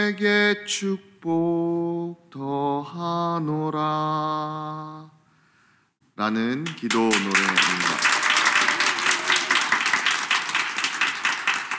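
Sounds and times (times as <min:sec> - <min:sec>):
speech: 0:00.0 - 0:05.1, 0:06.2 - 0:08.0
audience applause: 0:06.8 - 0:11.7.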